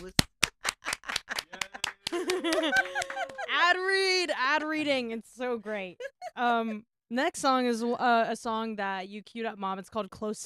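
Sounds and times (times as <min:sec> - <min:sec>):
applause: 0:00.0 - 0:03.6
laughter: 0:00.6 - 0:03.8, 0:05.7 - 0:06.8
speech: 0:03.7 - 0:10.4.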